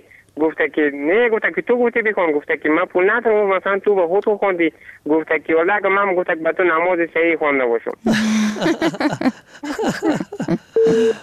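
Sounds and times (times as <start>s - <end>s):
speech: 0.4s - 11.2s
laughter: 8.1s - 11.2s
telephone busy tone after a call is cut off: 10.8s - 11.2s.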